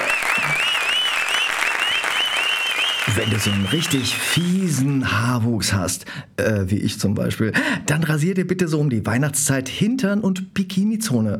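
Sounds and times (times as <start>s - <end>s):
studio audience applause in a comedy countdown: 0.0s - 5.1s
speech: 3.2s - 11.3s.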